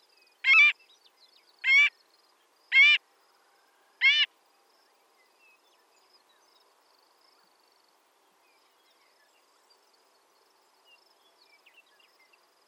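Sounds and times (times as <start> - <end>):
Marbled Godwit Limosa fedoa calling: 0.5 - 0.7, 1.6 - 1.9, 4.0 - 4.3.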